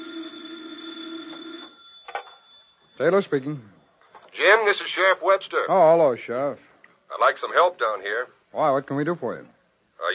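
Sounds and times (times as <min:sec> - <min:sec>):
telephone ringing on a desk at an FBI field office: 0:00.0 - 0:03.1
speech: 0:03.0 - 0:03.8, 0:04.4 - 0:10.1.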